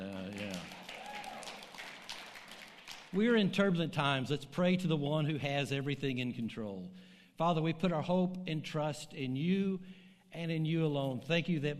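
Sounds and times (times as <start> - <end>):
audience hand clapping: 0.0 - 3.2
speech: 3.1 - 11.7.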